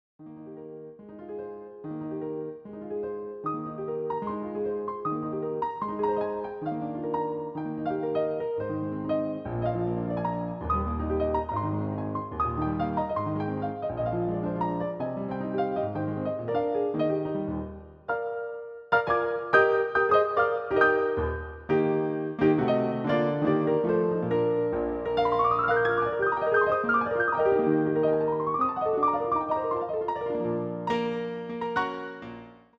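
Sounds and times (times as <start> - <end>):
piano roll music: 0.2 - 32.7.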